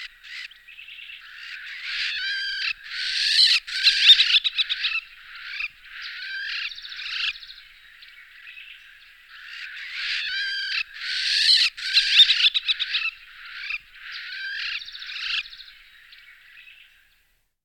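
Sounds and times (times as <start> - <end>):
Levant sparrowhawk calls: 1.2 - 7.3, 9.3 - 15.4.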